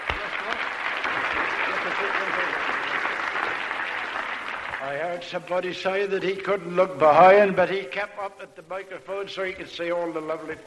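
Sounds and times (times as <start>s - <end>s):
audience applause: 0.0s - 5.4s
speech: 4.9s - 10.6s.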